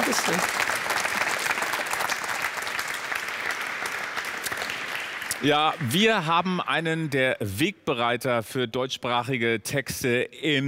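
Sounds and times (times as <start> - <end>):
audience applause: 0.0 - 7.5
speech: 0.1 - 0.7, 5.4 - 10.6.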